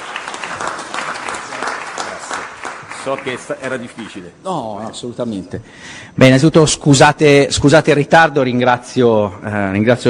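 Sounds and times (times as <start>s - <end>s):
audience applause at an Italian public event honoring a senator: 0.0s - 4.1s
speech: 3.0s - 10.0s.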